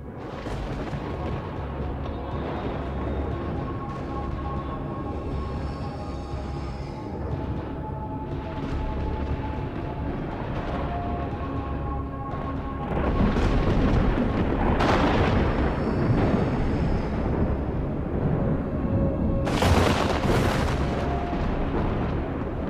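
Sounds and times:
lightning crashes: 0:00.0 - 0:04.4, 0:12.5 - 0:22.6
rolling thunder: 0:00.0 - 0:22.6.

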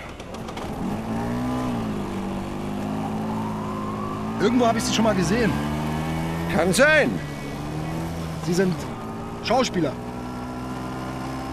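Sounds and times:
motorcycle engine revving and pulling away carrying a passenger: 0:00.0 - 0:11.5
speech: 0:04.4 - 0:05.8, 0:06.5 - 0:07.3, 0:08.5 - 0:10.0.

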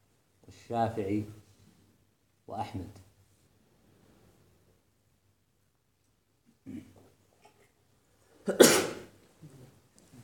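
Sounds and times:
speech: 0:00.7 - 0:01.4, 0:02.5 - 0:03.0, 0:08.5 - 0:08.9
sneeze: 0:08.4 - 0:09.2.

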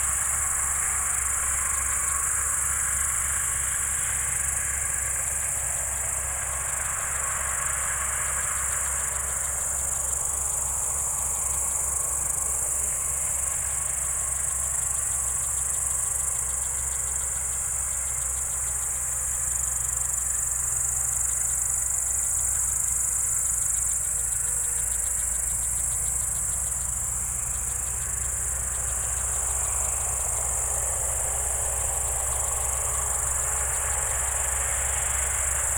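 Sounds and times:
crickets singing in a steady high shrill chorus: 0:00.0 - 0:35.7
low engine drone: 0:00.0 - 0:35.7.

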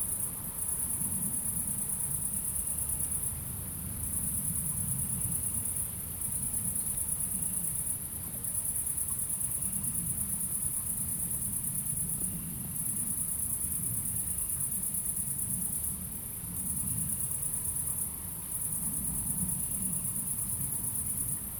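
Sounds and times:
crickets chirping at night in Aveize, France: 0:00.0 - 0:21.5.

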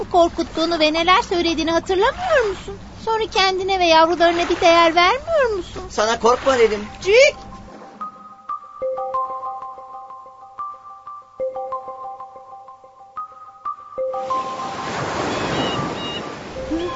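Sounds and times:
sea wave roaring: 0:00.0 - 0:03.0, 0:03.6 - 0:08.0, 0:14.2 - 0:16.9
speech: 0:00.1 - 0:07.4
plinking electronic notes: 0:06.8 - 0:16.9.

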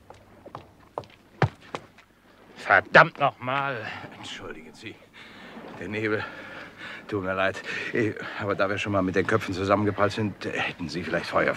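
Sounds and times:
quick footsteps of a person walking in fog near Battersea Bridge: 0:00.0 - 0:02.1
speech: 0:02.7 - 0:06.5, 0:07.1 - 0:11.5.

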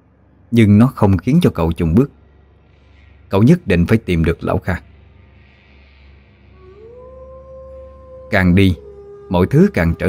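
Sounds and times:
speech: 0:00.5 - 0:02.2, 0:03.3 - 0:04.9, 0:08.3 - 0:10.0
wolf howling: 0:06.5 - 0:10.0.

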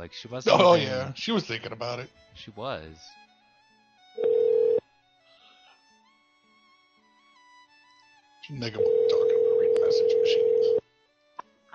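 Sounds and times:
speech: 0:00.0 - 0:03.2, 0:08.5 - 0:10.8
ringback tone on a phone line during a prank call: 0:04.2 - 0:04.8, 0:08.8 - 0:10.8.

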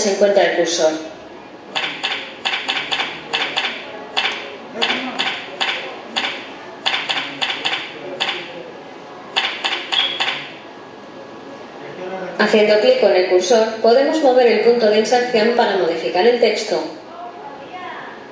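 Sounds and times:
speech: 0:00.0 - 0:01.1, 0:12.4 - 0:17.0
typing on a computer keyboard: 0:01.8 - 0:08.4, 0:09.4 - 0:10.5.

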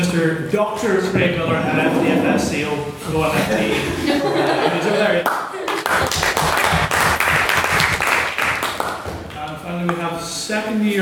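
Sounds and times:
speech: 0:00.1 - 0:06.3, 0:09.8 - 0:10.9
laughter: 0:00.8 - 0:06.4
audience applause: 0:05.2 - 0:09.2.

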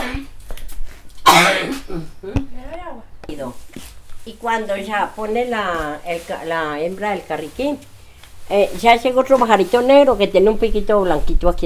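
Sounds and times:
person coughing: 0:00.0 - 0:00.3, 0:01.2 - 0:02.4
speech: 0:01.4 - 0:07.9, 0:08.5 - 0:11.6.

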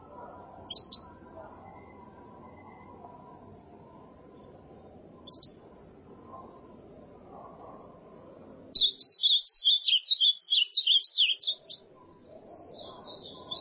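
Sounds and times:
ultramarine grosbeak whistled song: 0:00.7 - 0:01.0, 0:05.2 - 0:05.6, 0:08.8 - 0:11.8, 0:12.5 - 0:13.6.

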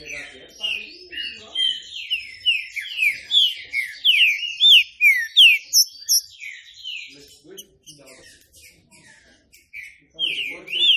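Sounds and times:
Green-winged saltator song: 0:00.0 - 0:10.9.

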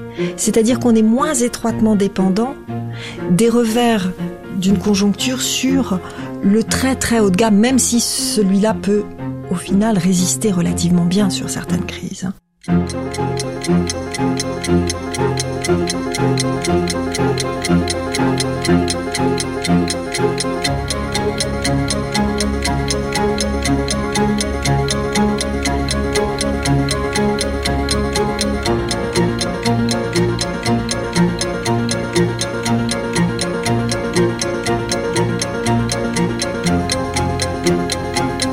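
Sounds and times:
speech: 0:00.2 - 0:14.8
clock ticking: 0:12.6 - 0:38.5
musical bed with low bass notes and sustained tones: 0:12.7 - 0:38.5.

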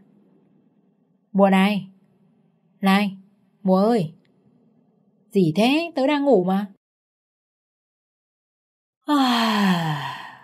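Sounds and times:
speech: 0:01.4 - 0:01.9, 0:02.8 - 0:04.2, 0:05.3 - 0:06.8, 0:09.1 - 0:10.0
woman yawning after being woken in the morning: 0:09.1 - 0:10.4.

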